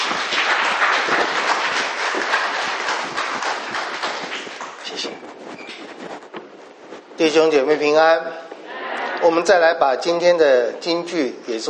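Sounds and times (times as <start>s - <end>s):
audience applause welcoming a speaker: 0.0s - 4.9s
speech: 7.2s - 8.4s, 9.2s - 11.6s.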